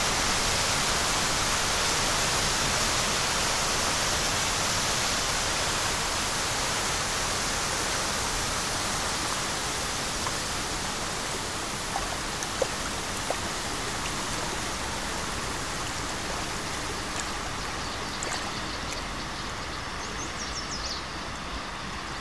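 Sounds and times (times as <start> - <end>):
Merced River rushing: 0.0 - 22.1
birds chirping: 9.6 - 21.0.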